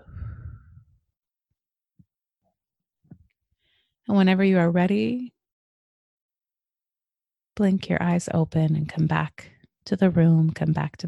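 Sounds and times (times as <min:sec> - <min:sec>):
soft breathy exhale during a guided meditation: 0:00.0 - 0:00.8
speech: 0:04.1 - 0:05.3, 0:07.6 - 0:11.0.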